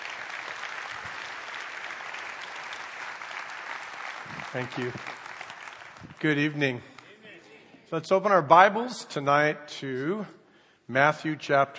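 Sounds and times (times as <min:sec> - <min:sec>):
church congregation clapping for a guest speaker: 0:00.0 - 0:07.1
speech: 0:04.5 - 0:05.2, 0:06.2 - 0:06.9, 0:07.9 - 0:11.7.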